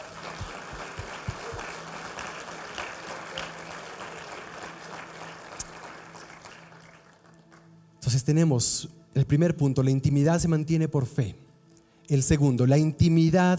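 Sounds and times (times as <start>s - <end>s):
audience applause: 0.0s - 7.7s
speech: 8.1s - 11.4s, 12.1s - 13.5s.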